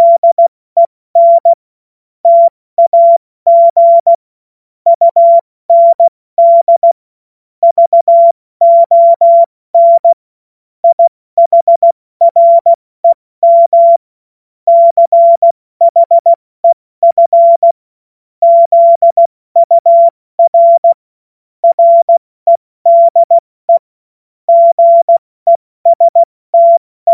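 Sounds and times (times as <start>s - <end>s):
CW Morse code beeps: 0.0s - 0.4s, 1.2s - 1.6s, 2.2s - 4.2s, 4.9s - 7.0s, 7.6s - 10.2s, 10.8s - 14.0s, 14.7s - 17.8s, 18.4s - 21.0s, 21.6s - 23.9s, 24.5s - 27.1s.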